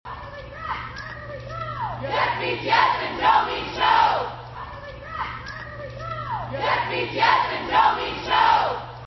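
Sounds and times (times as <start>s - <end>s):
chanting: 2.0s - 4.6s, 5.3s - 9.0s.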